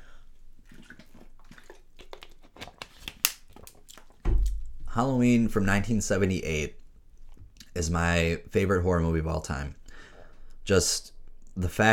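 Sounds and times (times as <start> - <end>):
person gulping water from a plastic bottle: 0.0 - 4.8
plastic bottle crinkling and crackling: 1.0 - 4.9
speech: 5.0 - 6.8, 7.8 - 9.8, 10.7 - 11.9.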